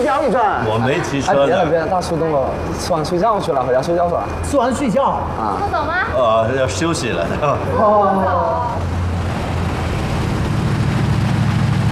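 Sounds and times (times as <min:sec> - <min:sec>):
speech: 0:00.2 - 0:09.0
Mercedes G-Class SUV engine rumble: 0:01.6 - 0:11.8.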